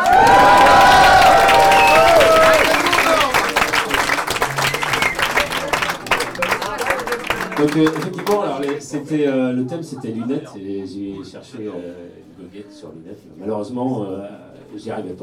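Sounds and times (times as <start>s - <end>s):
audience applause and cheering: 0.0s - 8.8s
speech: 7.7s - 15.2s.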